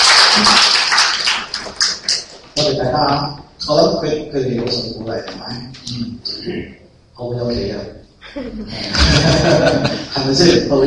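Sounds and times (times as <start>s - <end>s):
applause: 0.0s - 2.3s
speech: 2.9s - 10.8s
laughter: 8.2s - 10.8s.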